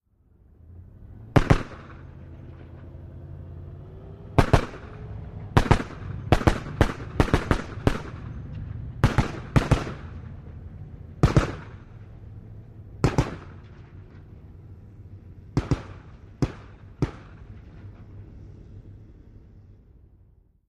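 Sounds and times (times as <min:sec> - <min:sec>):
APC armored personnel carrier driving, exterior: 0:00.1 - 0:20.6
.50 caliber machine gun firing: 0:01.4 - 0:02.2, 0:04.4 - 0:10.5, 0:11.2 - 0:12.1, 0:13.0 - 0:13.8, 0:15.5 - 0:17.8.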